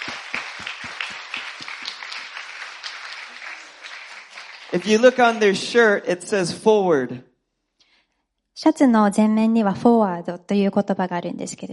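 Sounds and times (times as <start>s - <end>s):
audience clapping: 0.0s - 6.2s
speech: 4.7s - 7.3s, 8.6s - 11.7s.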